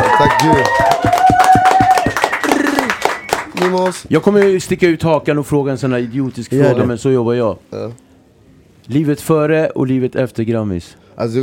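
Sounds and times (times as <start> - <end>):
vocal whoop or sung note: 0.0 - 3.0
small group clapping hands: 0.0 - 4.8
speech: 0.2 - 0.9, 3.6 - 8.1, 8.9 - 11.4.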